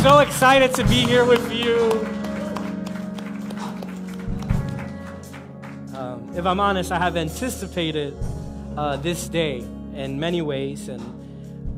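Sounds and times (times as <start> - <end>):
speech: 0.0 - 2.2, 6.2 - 11.2
audience clapping: 0.0 - 6.0
sustained musical tones: 0.0 - 10.9.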